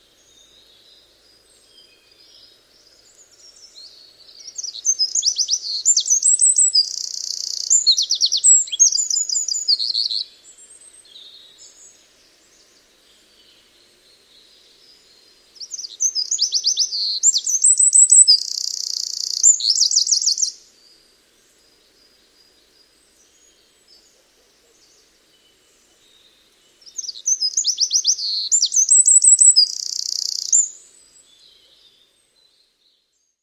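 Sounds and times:
bird song with rapid trills and buzzy phrases: 0:00.0 - 0:33.4.

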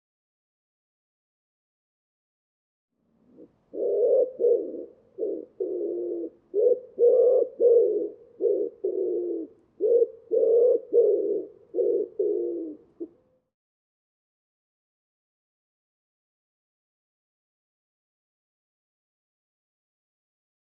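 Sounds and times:
Common Wood Pigeon cooing: 0:03.2 - 0:13.2.

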